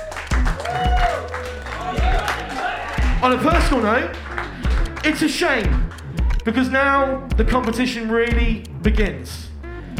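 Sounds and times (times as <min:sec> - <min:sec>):
audience clapping: 0:00.0 - 0:06.5
speech: 0:03.2 - 0:04.2, 0:05.0 - 0:09.4.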